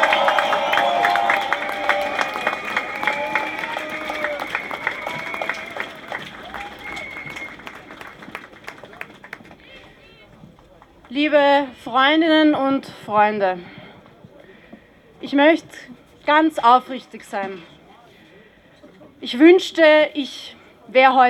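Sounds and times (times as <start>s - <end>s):
crowd applause at rally: 0.0s - 11.2s
speech: 11.3s - 13.8s, 15.3s - 17.7s, 19.2s - 21.2s.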